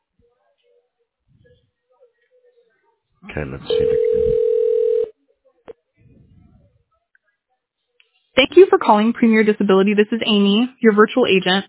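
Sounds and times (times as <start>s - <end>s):
speech: 3.2s - 4.6s, 8.5s - 11.6s
telephone dialing tones: 3.7s - 5.1s.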